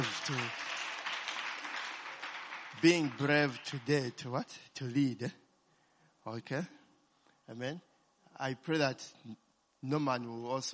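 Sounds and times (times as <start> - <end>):
speech: 0.0 - 0.6, 2.8 - 5.4, 6.3 - 6.8, 7.5 - 10.7
audience applause: 0.0 - 3.9.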